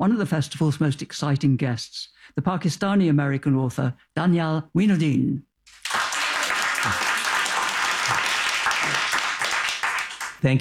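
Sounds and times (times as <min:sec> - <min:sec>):
speech: 0:00.0 - 0:05.5, 0:06.8 - 0:07.1
audience clapping inside the Edinburgh Bookshop: 0:05.7 - 0:10.5.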